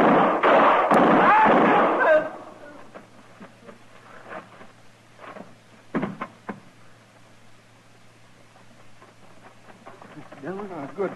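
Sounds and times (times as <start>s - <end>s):
gunshots in a western drama shootout: 0.0s - 2.5s
person shouting: 1.2s - 2.8s.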